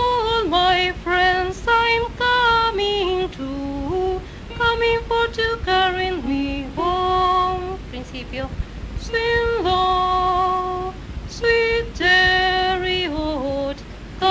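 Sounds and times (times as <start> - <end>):
tenors and basses singing: 0.0 - 14.3.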